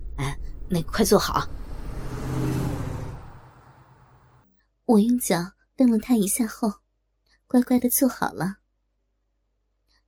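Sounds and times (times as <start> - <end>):
car being driven engine rumble: 0.0 - 4.4
road noise: 0.0 - 4.4
speech: 0.7 - 1.6, 4.9 - 6.8, 7.5 - 8.6.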